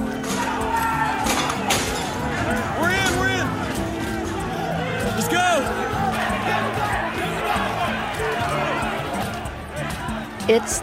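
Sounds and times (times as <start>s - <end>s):
crowd shouting: 0.0s - 10.8s
windows shattering: 0.1s - 5.2s
speech: 10.5s - 10.8s.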